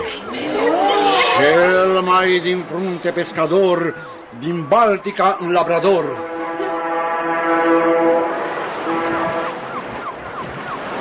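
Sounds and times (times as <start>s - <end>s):
wind and surf: 0.0s - 11.0s
speech: 2.2s - 6.2s
ship's siren horn blowing: 3.6s - 11.0s.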